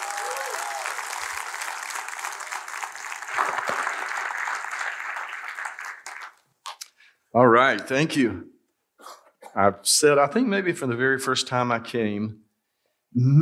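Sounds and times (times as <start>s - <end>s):
audience applause: 0.0s - 6.5s
speech: 7.4s - 8.5s, 9.6s - 12.4s, 13.1s - 13.4s.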